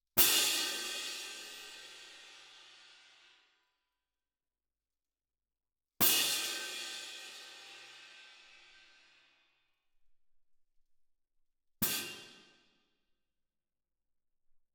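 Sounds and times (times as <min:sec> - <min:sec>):
percussion: 0:00.1 - 0:03.6, 0:06.0 - 0:09.4, 0:11.8 - 0:12.8.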